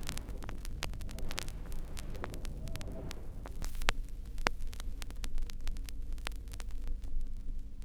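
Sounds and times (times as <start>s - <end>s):
vinyl crackle noise: 0.0s - 7.8s.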